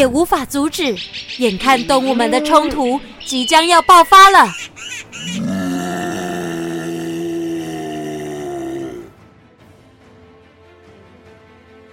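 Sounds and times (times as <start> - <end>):
speech: 0.0 - 5.5
black bear roaring: 5.2 - 9.2.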